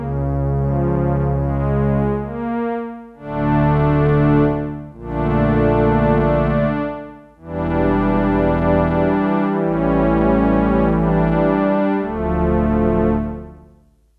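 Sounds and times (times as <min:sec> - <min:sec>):
synthesizer low strings patch: 0:00.0 - 0:14.0.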